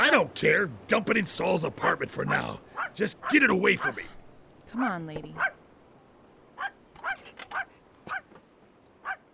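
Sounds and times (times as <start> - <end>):
speech: 0.1 - 5.6
dog barking and whimpering: 2.3 - 4.0, 5.4 - 5.6, 6.6 - 8.3, 9.0 - 9.2.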